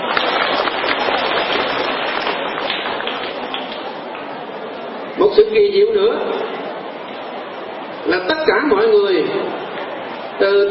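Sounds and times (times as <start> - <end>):
crowd clapping: 0.0 - 4.3
speech: 5.4 - 6.6, 8.1 - 9.6, 10.4 - 10.6.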